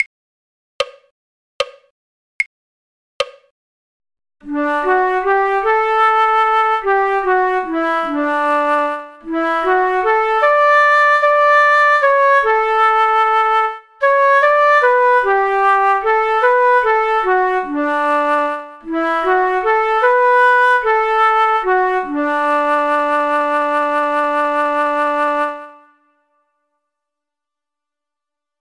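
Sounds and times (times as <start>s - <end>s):
flute: 4.5s - 26.4s.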